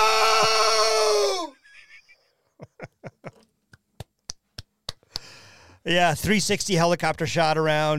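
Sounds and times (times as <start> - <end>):
man's loud battle scream imitating a movie character: 0.0 - 1.7
breathy chuckles: 1.6 - 3.5
speech: 5.8 - 7.9.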